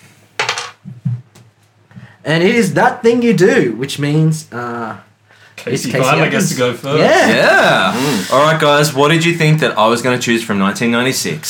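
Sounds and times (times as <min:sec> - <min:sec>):
dice rolling: 0:00.4 - 0:00.8
speech: 0:02.2 - 0:11.4.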